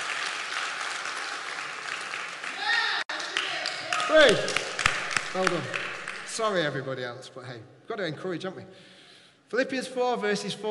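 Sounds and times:
audience round of applause: 0.0s - 6.4s
speech: 4.1s - 4.6s, 5.3s - 5.8s, 6.4s - 8.9s, 9.5s - 10.6s.

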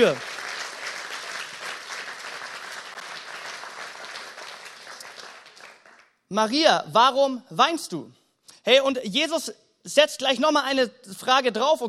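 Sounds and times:
speech: 0.0s - 0.3s, 6.3s - 11.8s
audience applause: 0.0s - 6.1s.

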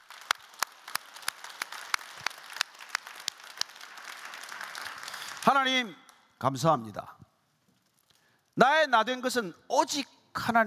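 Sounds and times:
audience applause: 0.0s - 5.5s
speech: 5.4s - 7.2s, 8.6s - 10.6s.

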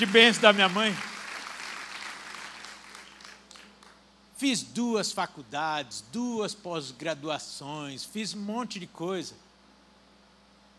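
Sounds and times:
speech: 0.0s - 1.1s, 4.4s - 9.4s
audience applause: 0.0s - 3.9s.

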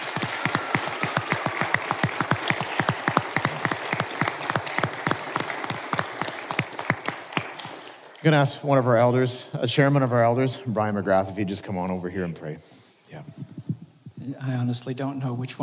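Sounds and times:
audience applause: 0.0s - 8.4s
speech: 8.2s - 12.8s, 14.3s - 15.6s.

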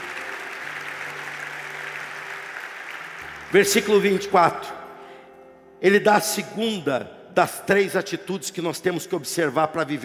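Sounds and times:
audience applause: 0.0s - 4.0s
speech: 3.5s - 4.8s, 5.8s - 10.0s.

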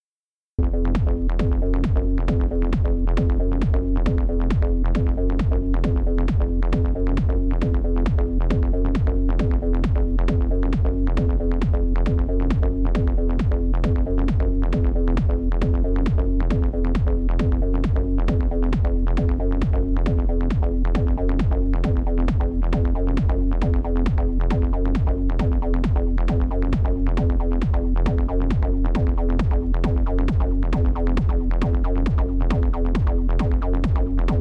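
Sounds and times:
old school acid techno music: 0.6s - 34.3s.

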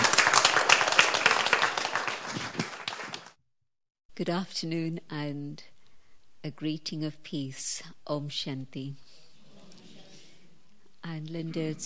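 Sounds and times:
audience applause welcoming Sister Jayanti onto the stage at a talk in Brighton: 0.0s - 3.4s
speech: 4.2s - 5.7s, 6.4s - 9.1s, 11.1s - 11.8s.

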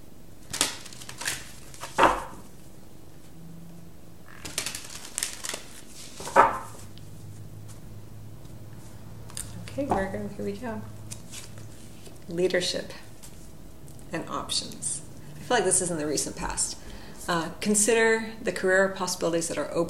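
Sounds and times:
card drawn from a Life Purpose oracle card deck: 0.4s - 2.6s, 4.3s - 7.0s, 11.1s - 12.2s
speech: 9.8s - 11.0s, 12.3s - 13.0s, 14.1s - 19.8s.

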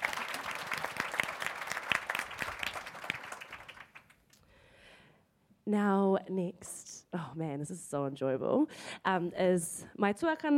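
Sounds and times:
round of applause: 0.0s - 4.3s
speech: 5.7s - 10.5s.

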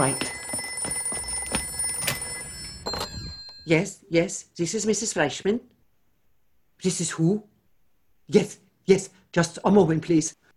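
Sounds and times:
speech: 0.0s - 0.3s, 3.7s - 5.7s, 6.8s - 7.5s, 8.3s - 10.4s
telephone ringing: 0.0s - 3.7s.

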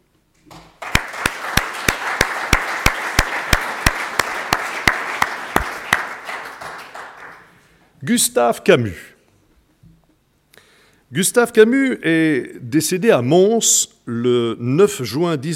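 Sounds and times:
audience applause: 0.7s - 7.6s
speech: 8.0s - 9.1s, 11.2s - 15.5s.

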